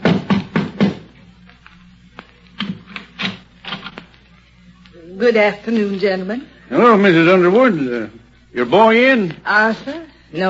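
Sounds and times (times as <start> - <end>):
knocking on a front door: 0.0 - 1.1
speech: 5.2 - 10.4.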